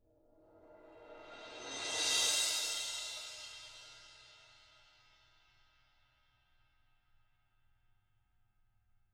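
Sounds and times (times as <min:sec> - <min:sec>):
ZILDP cymbal swell: 0:00.8 - 0:04.6.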